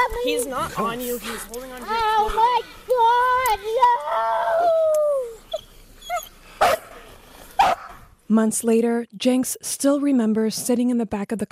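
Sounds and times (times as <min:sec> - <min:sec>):
speech: 0:00.1 - 0:04.8, 0:08.3 - 0:11.5
woman screaming: 0:03.7 - 0:05.4.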